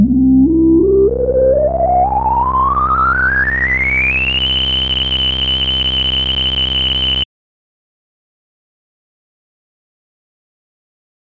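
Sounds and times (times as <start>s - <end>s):
crisp synthesizer sweep: 0.0s - 7.2s.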